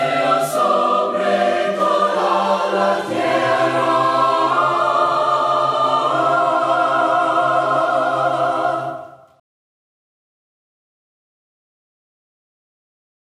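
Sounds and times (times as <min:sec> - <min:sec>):
voices singing hymns a cappella: 0:00.0 - 0:09.4.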